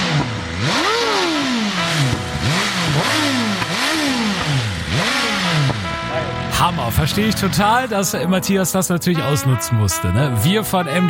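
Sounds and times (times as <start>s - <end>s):
motorcycle engine revving: 0.0s - 8.2s
speech: 6.8s - 11.0s.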